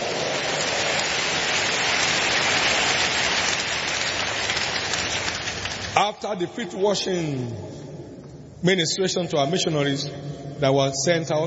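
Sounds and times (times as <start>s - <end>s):
audience applauding: 0.0s - 6.0s
speech: 6.0s - 8.0s, 8.6s - 11.4s.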